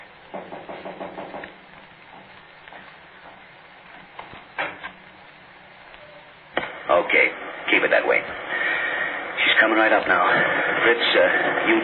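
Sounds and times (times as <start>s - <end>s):
knocks on a door: 0.3s - 2.3s
heavier thumps: 0.3s - 5.2s
speech: 7.1s - 8.4s, 9.6s - 11.8s.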